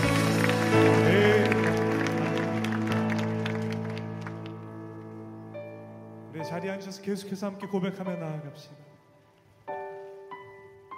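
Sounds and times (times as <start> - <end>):
audience applauding: 0.0 - 5.0
speech: 6.6 - 8.9.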